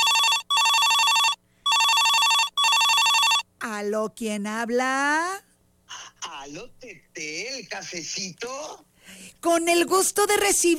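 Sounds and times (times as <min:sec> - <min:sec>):
telephone ringing: 0:00.0 - 0:03.5
speech: 0:03.8 - 0:05.5, 0:06.4 - 0:10.7.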